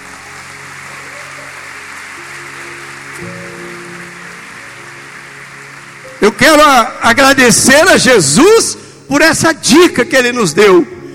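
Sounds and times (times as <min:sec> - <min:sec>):
audience applause: 0:00.0 - 0:08.4
speech: 0:03.2 - 0:03.4, 0:06.3 - 0:10.9.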